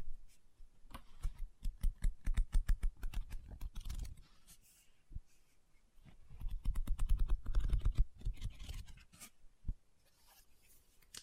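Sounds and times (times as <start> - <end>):
quick tapping and scratching on a book: 1.0 - 4.2, 6.3 - 9.0.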